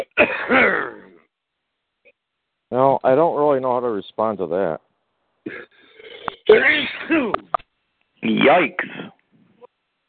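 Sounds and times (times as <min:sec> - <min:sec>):
person sneezing: 0:00.0 - 0:01.1, 0:05.5 - 0:07.5, 0:08.3 - 0:09.2
speech: 0:02.7 - 0:05.8, 0:06.5 - 0:07.6, 0:08.2 - 0:09.2.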